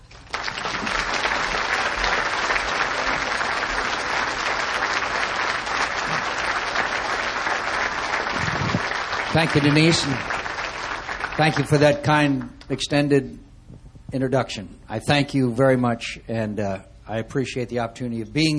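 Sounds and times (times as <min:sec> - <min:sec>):
audience applause for presidential candidate John McCain: 0:00.0 - 0:12.1
speech: 0:09.4 - 0:10.4, 0:11.4 - 0:13.4, 0:14.1 - 0:18.5.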